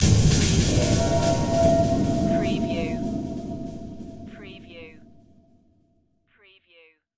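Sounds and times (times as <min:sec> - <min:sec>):
dark production element hits: 0:00.0 - 0:05.7.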